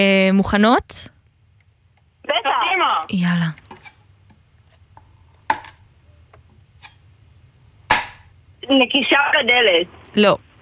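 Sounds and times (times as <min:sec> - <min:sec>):
speech: 0:00.0 - 0:01.1, 0:02.3 - 0:03.6, 0:08.7 - 0:10.5
knife chopping on a cutting board: 0:07.9 - 0:08.2.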